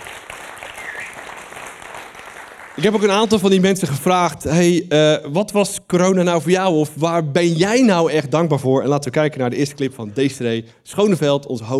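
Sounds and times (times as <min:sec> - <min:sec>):
audience applause: 0:00.0 - 0:03.6
speech: 0:02.8 - 0:11.7.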